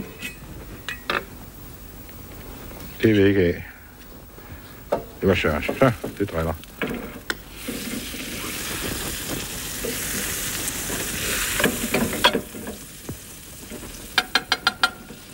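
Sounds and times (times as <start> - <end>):
speech: 3.0 - 3.7, 5.2 - 7.1
butter sizzling and browning in a frying pan: 5.2 - 15.3.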